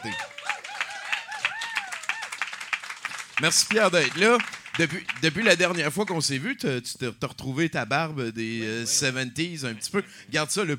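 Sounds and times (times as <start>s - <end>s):
speech: 0.0s - 0.3s, 3.4s - 10.7s
whistle-like cheers: 0.0s - 2.4s
audience applause for the guest: 0.0s - 6.2s.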